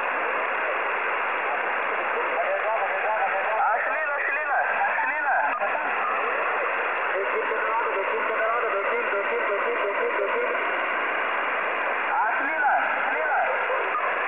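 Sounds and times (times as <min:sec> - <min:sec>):
intruder signal on the 7 MHz amateur radio band: 0:00.0 - 0:14.2.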